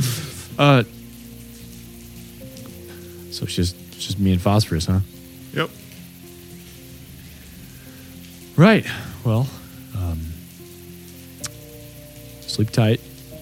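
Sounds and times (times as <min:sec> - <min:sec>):
steady rain: 0:00.0 - 0:13.4
speech: 0:00.6 - 0:01.0, 0:03.4 - 0:05.8, 0:08.6 - 0:10.3, 0:12.6 - 0:13.0.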